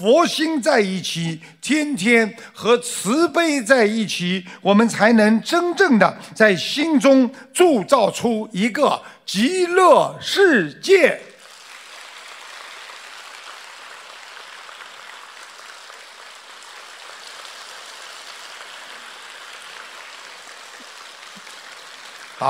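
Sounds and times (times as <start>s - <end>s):
speech: 0.0s - 11.3s
large audience applause: 11.4s - 22.4s.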